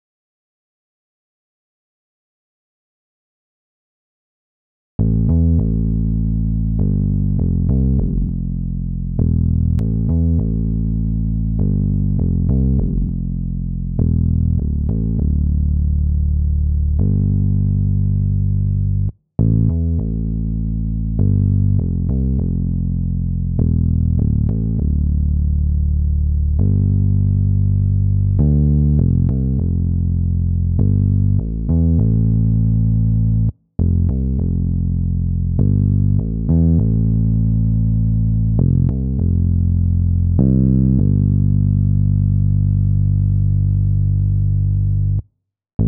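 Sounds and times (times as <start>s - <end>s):
bass: 5.0s - 45.8s.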